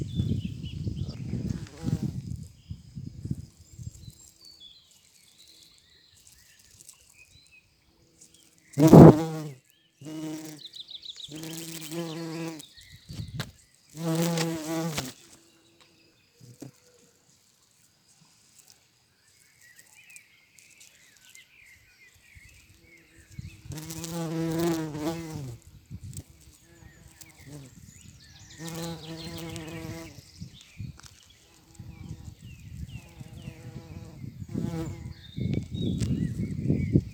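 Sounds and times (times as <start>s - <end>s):
bumblebee buzzing in flight: 0.0s - 7.3s, 8.2s - 15.5s, 22.3s - 37.1s
light breeze: 0.0s - 9.4s, 10.5s - 37.1s.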